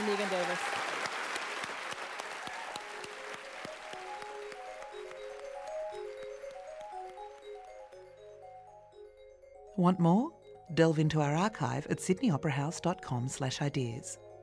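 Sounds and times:
audience applause: 0:00.0 - 0:07.8
light melodic tune: 0:02.4 - 0:14.4
speech: 0:09.8 - 0:14.3.

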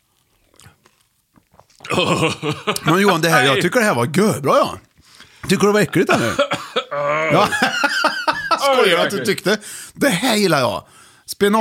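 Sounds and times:
crunchy chewing of crispbread: 0:00.0 - 0:01.9
laughter: 0:01.9 - 0:03.7, 0:06.0 - 0:09.6
speech: 0:01.9 - 0:04.9, 0:05.5 - 0:11.5.

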